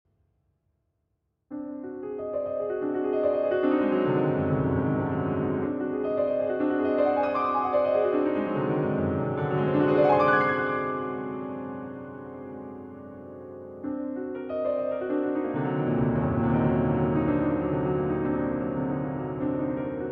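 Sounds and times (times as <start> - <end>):
solo piano: 1.5 - 20.1.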